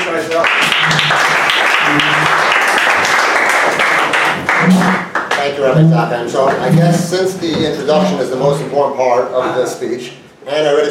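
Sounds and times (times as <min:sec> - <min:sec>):
loud applause welcoming a speaker: 0:00.0 - 0:05.6
speech: 0:05.6 - 0:10.8.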